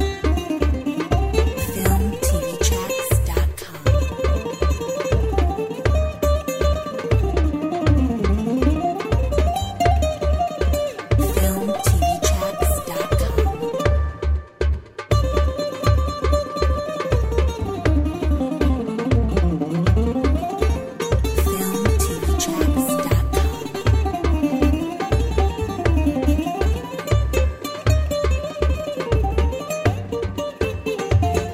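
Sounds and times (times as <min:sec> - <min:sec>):
Greek dance music on darbuka: 0:00.0 - 0:31.5.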